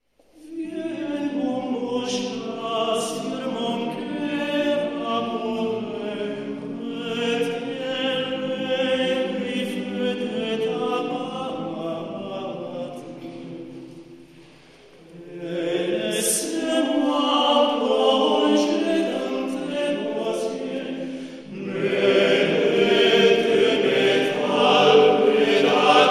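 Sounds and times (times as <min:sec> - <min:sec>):
male choir singing: 0:00.4 - 0:14.0, 0:15.0 - 0:26.1.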